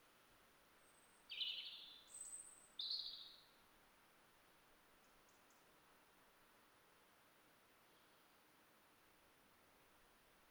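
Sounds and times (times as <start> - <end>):
faint background hiss: 0.0 - 10.4
European robin song: 0.9 - 3.4.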